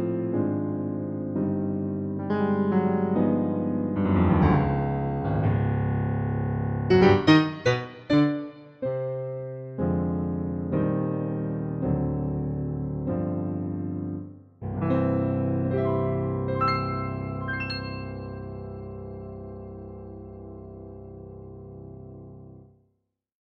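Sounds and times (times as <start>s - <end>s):
dynamic jazz piano played relaxed: 0.0s - 22.6s.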